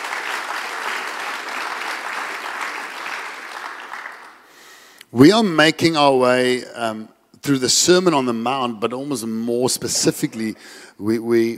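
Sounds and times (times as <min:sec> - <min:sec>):
audience clapping: 0:00.0 - 0:04.8
speech: 0:05.1 - 0:11.5.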